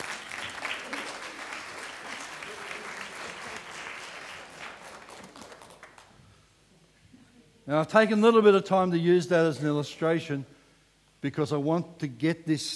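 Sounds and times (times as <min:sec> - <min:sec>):
audience clapping: 0:00.0 - 0:06.2
speech: 0:07.7 - 0:10.6, 0:11.2 - 0:12.7.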